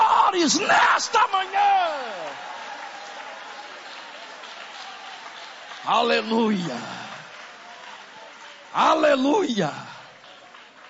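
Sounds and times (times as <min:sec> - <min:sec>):
audience applause: 0:00.0 - 0:10.8
speech: 0:00.4 - 0:01.4, 0:05.8 - 0:07.0, 0:08.7 - 0:10.0.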